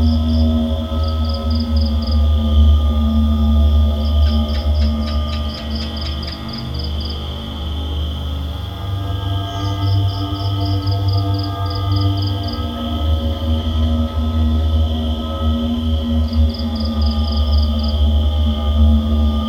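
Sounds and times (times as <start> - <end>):
night ambience: 0.0 - 19.4.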